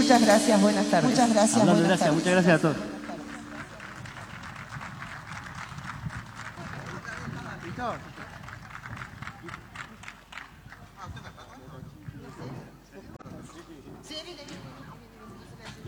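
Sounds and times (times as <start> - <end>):
speech: 0.2 - 2.9
audience applause: 1.6 - 11.0.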